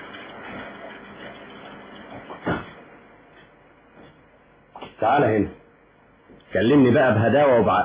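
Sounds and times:
low hum: 0.0 - 7.8
factory door swinging shut with a solid thud: 2.3 - 2.8
speech: 5.0 - 5.6, 6.5 - 7.8.

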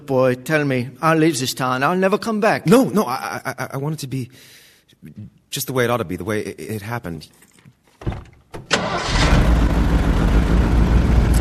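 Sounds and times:
speech: 0.1 - 8.2
engine of a fairly new car with a sprung crankshaft cranking and running roughly: 8.6 - 11.3.

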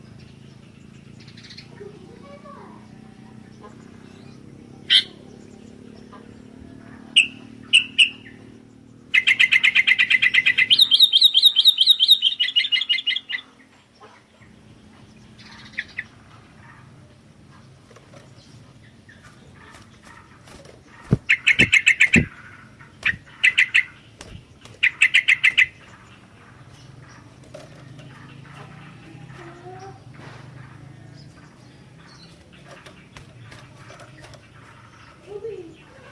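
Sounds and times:
sooty-headed bulbul chirping: 4.1 - 5.2, 7.2 - 13.5, 18.9 - 35.6.

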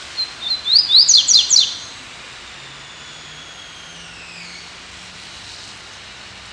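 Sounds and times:
Double-collared Seedeater singing: 0.1 - 4.9.

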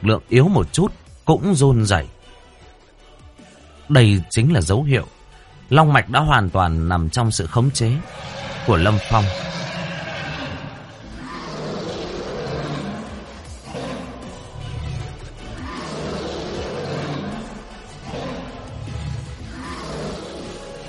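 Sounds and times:
speech: 0.0 - 2.2, 3.9 - 9.6
dragon roar sound effect: 7.9 - 20.8.

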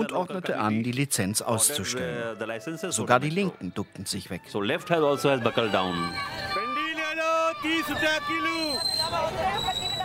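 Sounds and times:
speech: 0.0 - 6.6, 7.6 - 10.0
crowd chatter: 1.4 - 10.0
vegetable vendor shouting at roadside market: 5.0 - 8.7
traffic: 5.2 - 10.0.

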